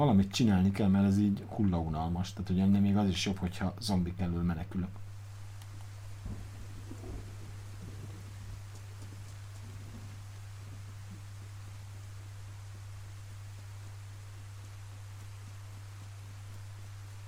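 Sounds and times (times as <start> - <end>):
speech: 0.0 - 5.0
constant low hum: 0.0 - 17.2
rain falling in a video game: 4.8 - 17.2.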